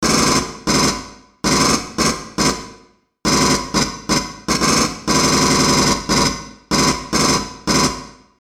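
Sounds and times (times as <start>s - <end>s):
M41A pulse rifle firing: 0.0s - 8.3s.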